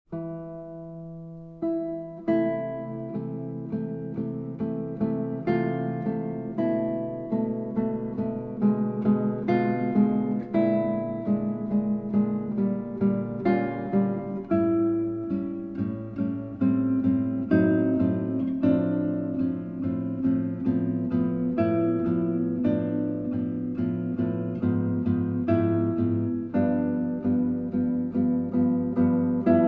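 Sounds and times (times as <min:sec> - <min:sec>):
guitar arrangement of a prelude: 0:00.1 - 0:29.6.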